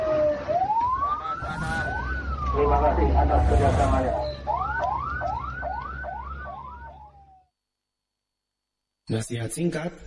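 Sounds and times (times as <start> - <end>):
low traffic rumble: 0.0 - 7.4
ambulance siren: 0.0 - 7.5
speech: 2.6 - 4.3, 9.1 - 10.0.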